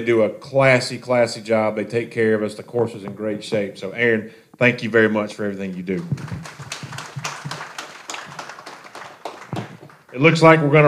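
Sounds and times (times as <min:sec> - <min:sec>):
speech: 0:00.0 - 0:06.7, 0:10.2 - 0:10.8
audience clapping: 0:05.7 - 0:10.6.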